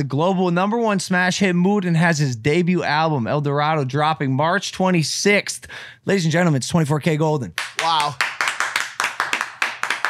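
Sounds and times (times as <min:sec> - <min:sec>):
speech: 0:00.0 - 0:08.3
hands clapping to welcome guest: 0:07.6 - 0:10.0.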